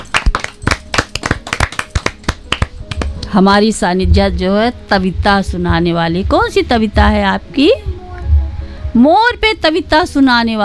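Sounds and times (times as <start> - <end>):
children clapping for a classmate: 0.0 - 3.2
speech: 3.3 - 7.9, 9.0 - 10.6.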